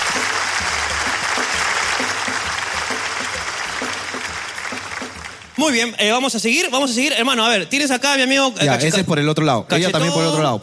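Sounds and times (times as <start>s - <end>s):
audience applause: 0.0s - 5.9s
speech: 5.6s - 10.6s.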